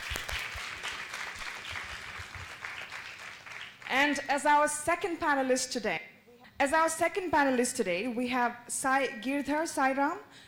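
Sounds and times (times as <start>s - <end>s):
audience applause: 0.0s - 3.9s
speech: 3.9s - 10.4s.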